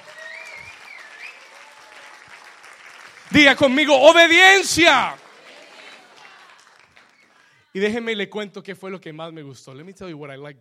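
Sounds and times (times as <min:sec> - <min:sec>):
audience applause: 0:00.0 - 0:07.6
speech: 0:03.3 - 0:05.2, 0:07.7 - 0:10.5.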